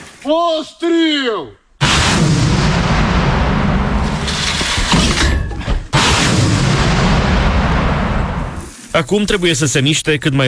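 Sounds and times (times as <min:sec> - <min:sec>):
speech: 0:00.3 - 0:01.6, 0:09.0 - 0:10.4
artillery gun firing from a front-line position: 0:01.8 - 0:08.7.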